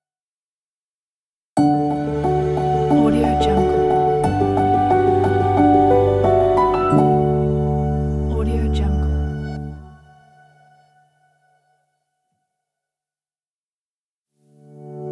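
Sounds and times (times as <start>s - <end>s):
beautiful piano logo jingle: 1.6s - 9.8s.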